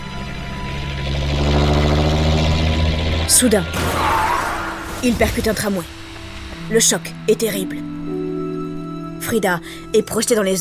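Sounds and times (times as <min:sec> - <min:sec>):
coach bus engine droning while driving fast: 0:00.0 - 0:07.3
speech: 0:03.4 - 0:04.0, 0:05.0 - 0:06.0, 0:06.7 - 0:07.9, 0:09.2 - 0:10.5.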